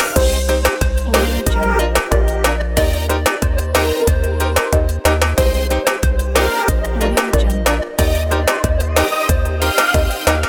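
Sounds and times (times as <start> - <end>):
catwalk lifestyle logo jingle: 0.2 - 10.4.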